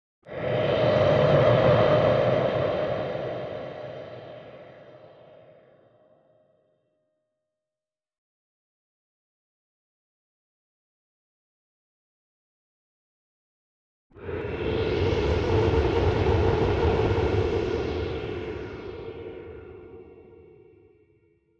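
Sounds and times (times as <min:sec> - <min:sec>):
air swarm: 0:00.3 - 0:05.5, 0:14.2 - 0:20.8.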